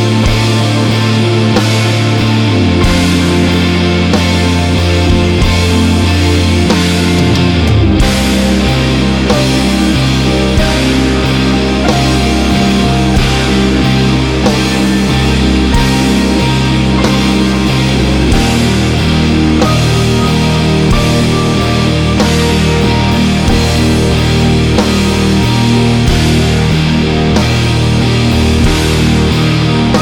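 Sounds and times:
bass drum: 0:00.0 - 0:30.0.

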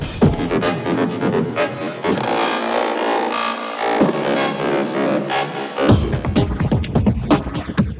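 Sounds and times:
granular loop: 0:00.2 - 0:07.9.

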